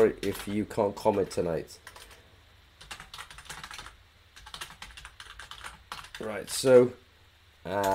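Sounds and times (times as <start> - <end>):
speech: 0.0 - 2.1, 6.2 - 7.0, 7.6 - 7.9
typing on a computer keyboard: 0.0 - 2.2, 2.8 - 6.2.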